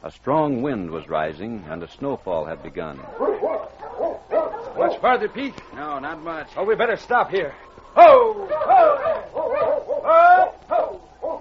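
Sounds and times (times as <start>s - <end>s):
speech: 0.0s - 3.6s, 4.8s - 9.3s
dog barking and whimpering: 2.9s - 5.4s, 7.9s - 11.3s.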